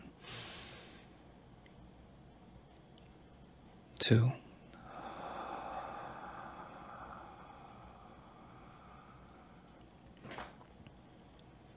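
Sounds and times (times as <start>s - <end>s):
deep breath in: 0.2s - 1.1s, 4.8s - 9.8s
speech: 4.0s - 4.4s.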